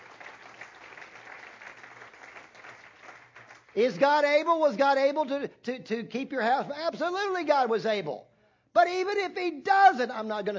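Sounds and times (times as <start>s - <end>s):
audience applause: 0.0s - 4.0s
speech: 3.8s - 10.5s.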